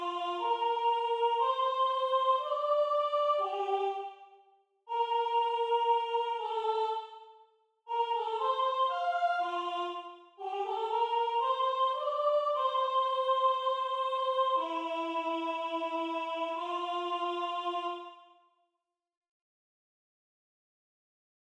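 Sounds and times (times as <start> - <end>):
soprano singing: 0.0 - 4.2, 4.9 - 7.2, 7.9 - 18.2.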